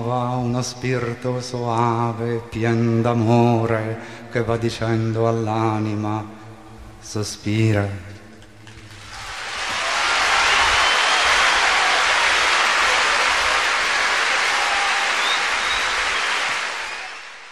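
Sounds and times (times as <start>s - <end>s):
speech: 0.0s - 6.4s, 7.0s - 8.1s
audience applause after poetry reading: 8.9s - 17.4s.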